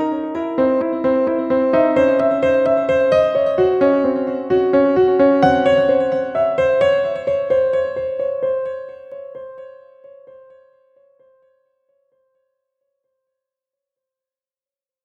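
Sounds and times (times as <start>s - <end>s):
130 bpm music track: 0.0s - 10.0s.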